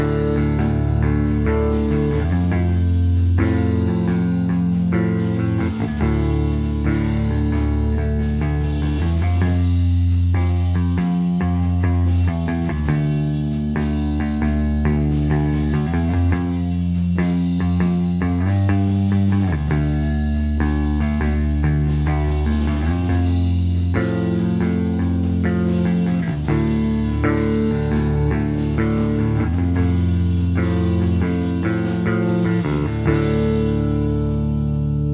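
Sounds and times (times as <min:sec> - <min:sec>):
D112 bass: 0:00.0 - 0:35.1.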